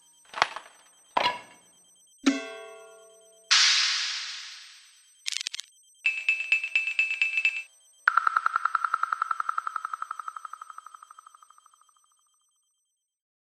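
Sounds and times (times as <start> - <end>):
percussion: 3.5 - 11.8.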